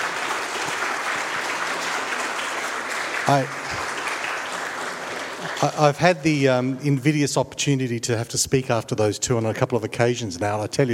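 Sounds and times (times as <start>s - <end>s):
audience applause: 0.0s - 6.7s
speech: 3.3s - 3.9s, 5.6s - 10.9s.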